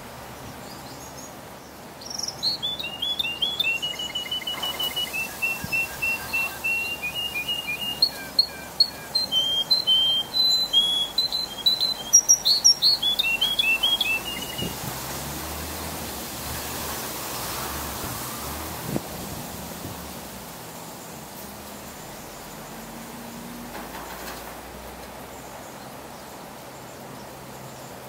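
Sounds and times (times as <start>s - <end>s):
hiss: 0.0s - 28.0s
canary singing: 2.0s - 15.6s.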